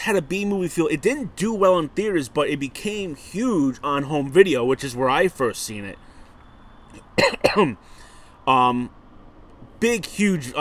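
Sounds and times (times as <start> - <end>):
speech: 0.0 - 6.1, 6.9 - 9.0, 9.8 - 10.5
throat clearing with something stuck in the throat: 7.0 - 7.8.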